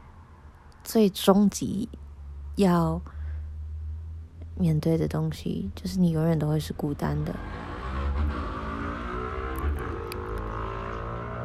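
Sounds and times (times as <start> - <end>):
speech: 0.9 - 2.0, 2.6 - 3.2, 4.6 - 7.7
street racing car with modified loud exhaust roaring and revving: 7.2 - 11.4.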